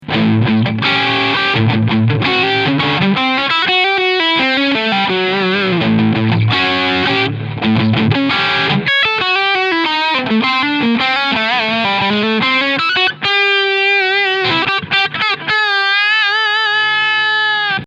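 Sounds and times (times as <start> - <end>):
Asat Special electric guitar with overdriven pickup: 0.0 - 17.8.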